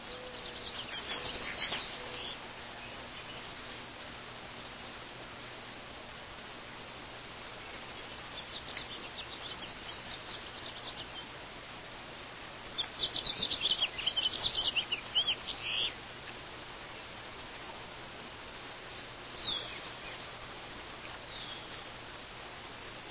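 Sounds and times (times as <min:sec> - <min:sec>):
morning birds singing: 0:00.0 - 0:03.9, 0:07.1 - 0:11.4, 0:12.6 - 0:17.2, 0:18.8 - 0:22.2.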